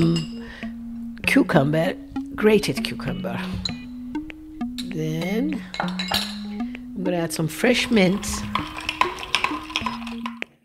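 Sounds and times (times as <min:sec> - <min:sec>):
speech: 0:01.3 - 0:03.7, 0:05.0 - 0:06.3, 0:07.0 - 0:08.8
ice clinking against a glass stirring Persian sharbat: 0:08.1 - 0:10.4.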